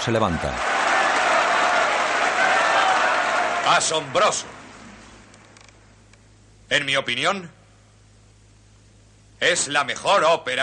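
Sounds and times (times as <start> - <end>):
speech: 0.0 - 0.9, 3.7 - 4.6, 6.7 - 7.6, 9.4 - 10.6
opera audience applauding after a performance: 0.1 - 5.3.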